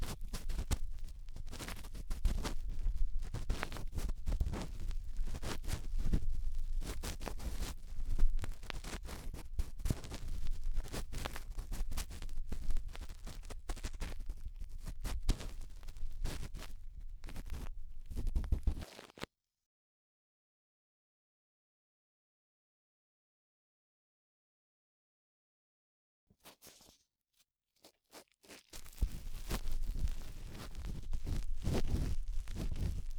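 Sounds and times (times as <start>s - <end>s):
cotton swab rubbing deep inside the right ear: 0.1s - 19.2s, 28.5s - 33.1s.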